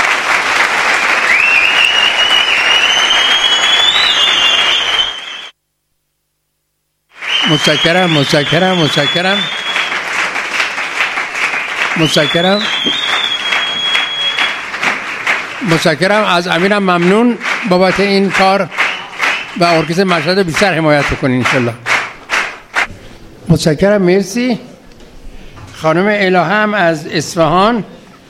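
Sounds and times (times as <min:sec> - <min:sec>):
audience applause honouring a live orchestra at a celebration: 0:00.0 - 0:05.5, 0:07.1 - 0:22.9
high whistles: 0:01.0 - 0:05.6, 0:07.2 - 0:10.0, 0:12.0 - 0:14.6
speech: 0:07.5 - 0:09.6, 0:12.0 - 0:13.0, 0:15.6 - 0:18.8, 0:19.6 - 0:21.8, 0:23.5 - 0:24.7, 0:25.8 - 0:28.0.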